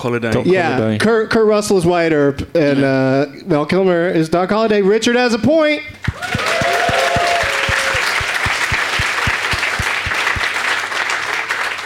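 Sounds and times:
speech: 0.0 - 6.7
audience applauding: 6.0 - 11.8.

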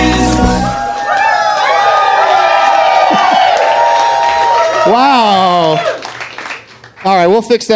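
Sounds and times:
large studio audience cheering: 0.2 - 6.9
whoops and shouts: 0.8 - 6.0
speech: 7.4 - 7.7.

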